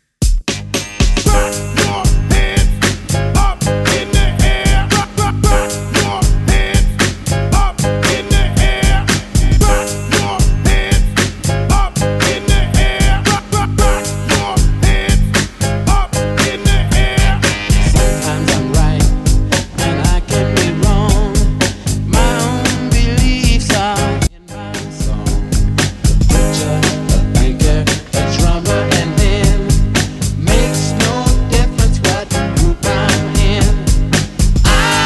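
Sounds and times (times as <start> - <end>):
hyped 60s intro and outro music: 0.3 - 35.0.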